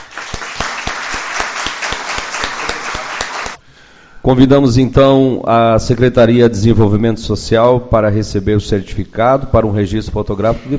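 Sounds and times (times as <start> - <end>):
audience applause: 0.0 - 3.6
speech: 4.2 - 10.7.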